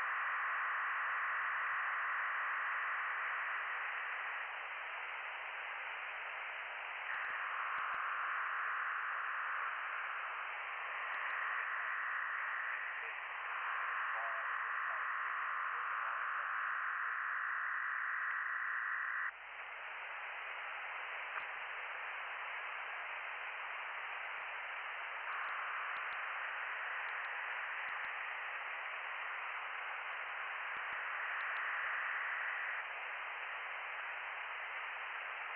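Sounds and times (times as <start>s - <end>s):
shortwave radio signal on 7177 kHz: 0.0s - 35.5s.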